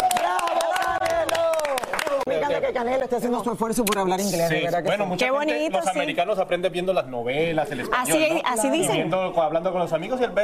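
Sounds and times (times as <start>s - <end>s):
applause for a boxer's win: 0.0s - 2.4s
speech: 2.6s - 10.4s.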